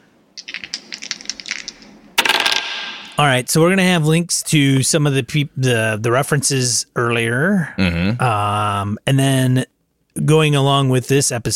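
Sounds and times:
dice being rolled: 0:00.4 - 0:03.1
speech: 0:03.2 - 0:11.5.

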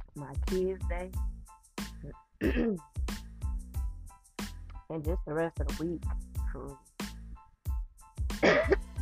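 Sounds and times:
speech: 0:00.1 - 0:01.3, 0:02.0 - 0:03.0, 0:04.9 - 0:06.9
woman coughing after a Skittle went down the wrong way: 0:02.4 - 0:02.8, 0:08.4 - 0:08.9.

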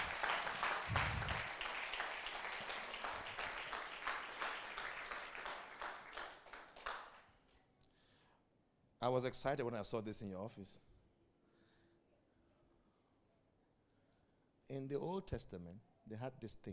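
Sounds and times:
audience clapping: 0:00.0 - 0:07.4
speech: 0:09.0 - 0:10.9, 0:14.7 - 0:16.7.

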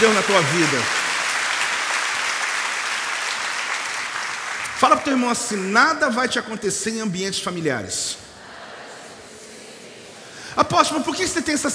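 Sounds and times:
speech: 0:00.0 - 0:01.0, 0:04.8 - 0:08.3, 0:10.6 - 0:11.7
audience applause: 0:00.0 - 0:05.2.

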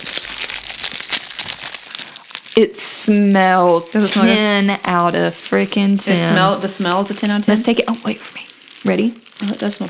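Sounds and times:
package being torn open, crinkling: 0:00.0 - 0:02.7, 0:06.5 - 0:09.8
speech: 0:02.6 - 0:09.8.

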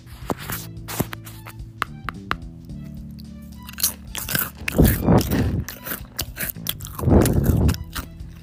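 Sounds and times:
crunching bites of a Cheez-It cracker for ASMR: 0:03.6 - 0:08.4.

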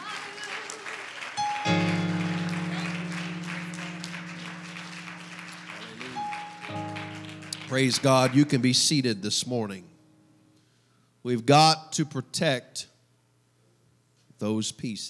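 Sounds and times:
audience clapping: 0:00.0 - 0:09.1
speech: 0:07.7 - 0:09.9, 0:11.2 - 0:12.9, 0:14.4 - 0:15.0.

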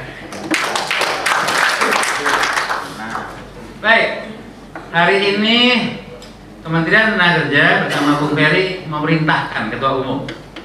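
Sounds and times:
audience applause: 0:00.3 - 0:03.4
speech: 0:03.8 - 0:04.2, 0:04.9 - 0:06.0, 0:06.6 - 0:10.4.

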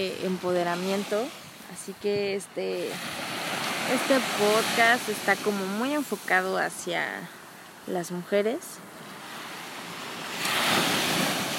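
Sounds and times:
speech: 0:00.0 - 0:03.2, 0:03.9 - 0:08.9
ocean waves breaking on shore: 0:00.0 - 0:11.5.

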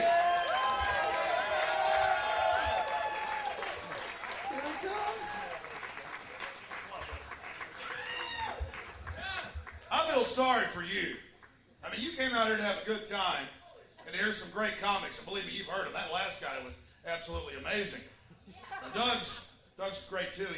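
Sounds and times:
crowd applauding: 0:00.0 - 0:10.0
speech: 0:10.4 - 0:11.3, 0:12.0 - 0:18.2, 0:18.8 - 0:20.5.

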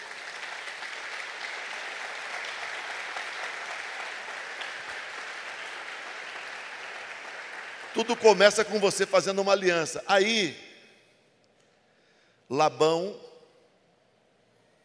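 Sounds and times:
applause: 0:00.0 - 0:09.7
speech: 0:07.9 - 0:10.6, 0:12.5 - 0:13.2.

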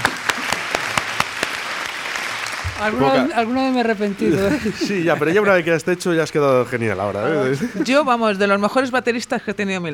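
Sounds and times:
audience applause: 0:00.0 - 0:04.8
speech: 0:02.8 - 0:09.9
laughter: 0:04.1 - 0:05.7, 0:07.3 - 0:08.2.

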